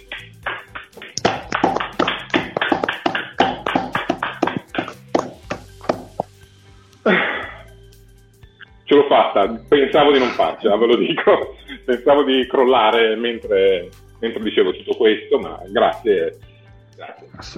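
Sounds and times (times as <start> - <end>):
hand clapping: 0.0 - 6.4
speech: 9.4 - 17.5
laughter: 10.1 - 11.2.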